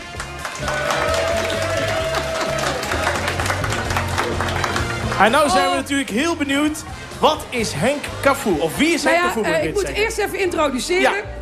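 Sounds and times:
audience applause: 0.0s - 6.9s
speech: 5.2s - 11.4s.

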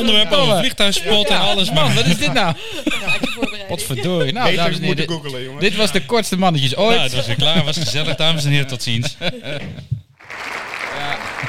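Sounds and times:
speech: 0.0s - 9.9s
laughter: 0.0s - 10.0s
applause sound effect: 10.2s - 11.4s.

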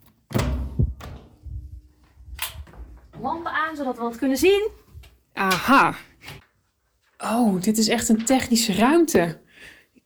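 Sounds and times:
door lock and handle of a secured technical room being unlocked: 0.3s - 1.3s
speech: 3.2s - 4.8s, 5.4s - 6.4s, 7.2s - 9.4s.

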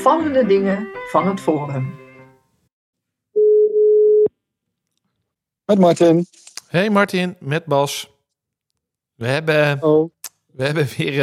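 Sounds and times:
speech: 0.0s - 2.0s, 5.7s - 8.1s, 9.2s - 11.2s
ringing tone of an outgoing telephone call: 3.4s - 4.3s.

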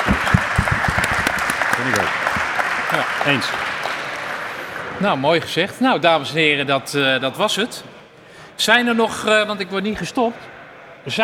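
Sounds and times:
audience applause: 0.0s - 4.5s
speech: 3.0s - 3.7s, 5.0s - 7.9s, 8.6s - 11.2s.

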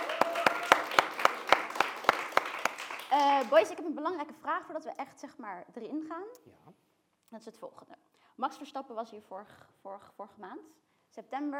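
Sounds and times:
applause: 0.0s - 3.9s
speech: 3.4s - 11.5s.

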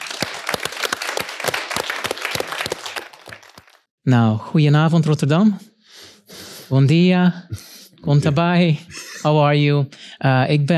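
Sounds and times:
audience applause: 0.0s - 3.9s
speech: 4.0s - 5.7s, 6.7s - 10.7s.

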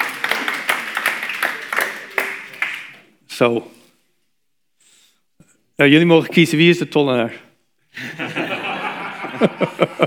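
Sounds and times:
audience applause: 0.0s - 3.0s
speech: 3.4s - 3.8s, 5.8s - 8.2s, 9.4s - 10.0s
laughter: 8.0s - 10.0s.

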